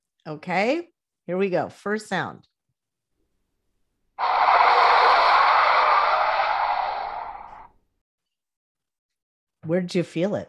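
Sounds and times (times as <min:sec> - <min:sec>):
speech: 0:00.2 - 0:02.5, 0:09.6 - 0:10.4
car tires screeching: 0:04.2 - 0:07.8.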